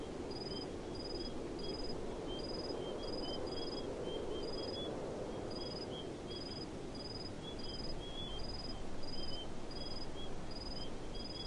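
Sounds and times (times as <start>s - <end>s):
crickets chirping in a desert: 0.3s - 4.9s, 5.5s - 11.4s.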